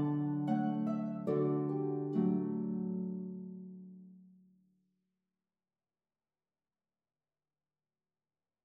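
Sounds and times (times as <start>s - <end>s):
harp duet: 0.0s - 4.0s.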